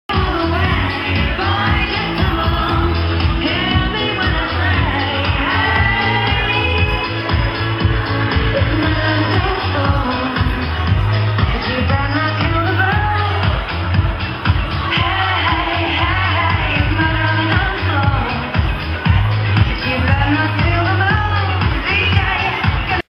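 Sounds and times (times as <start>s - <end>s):
dance song: 0.1s - 23.1s.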